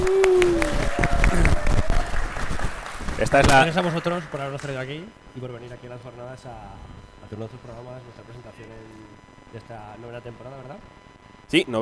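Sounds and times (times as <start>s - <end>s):
audience applause: 0.0s - 5.0s
speech: 3.3s - 11.8s.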